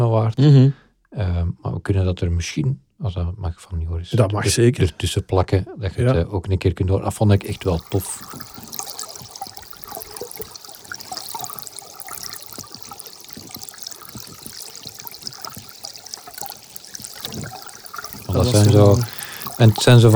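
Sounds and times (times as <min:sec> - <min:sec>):
speech: 0:00.1 - 0:08.6, 0:18.4 - 0:20.1
small partly covered stream trickling: 0:07.3 - 0:20.1.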